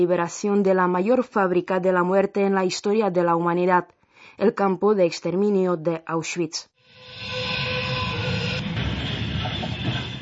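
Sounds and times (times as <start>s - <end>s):
speech: 0.0s - 7.6s
train whistle: 6.8s - 10.2s.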